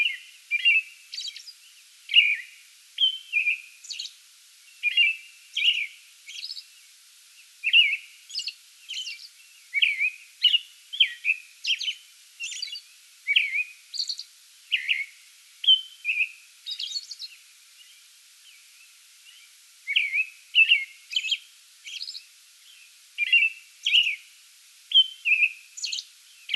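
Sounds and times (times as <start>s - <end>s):
American robin singing: 0.0s - 24.3s, 24.9s - 26.5s.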